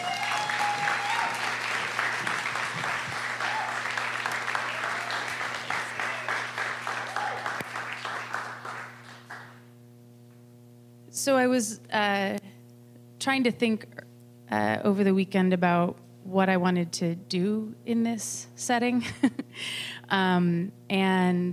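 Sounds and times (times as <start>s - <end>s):
audience applause welcoming a poet to the stage at a literary event: 0.0s - 9.6s
low steady hum: 0.0s - 21.5s
speech: 11.2s - 12.4s, 13.3s - 21.5s.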